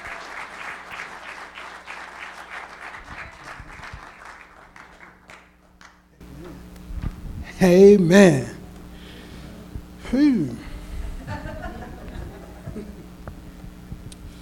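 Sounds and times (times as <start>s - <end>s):
audience clapping: 0.0s - 6.2s
speech: 7.6s - 8.6s
laughter: 10.4s - 13.1s.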